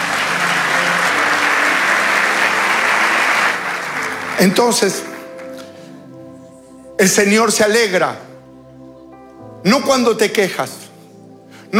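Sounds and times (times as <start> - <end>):
audience applause: 0.0 - 6.3
speech: 4.4 - 5.1, 7.0 - 8.3, 9.6 - 10.8.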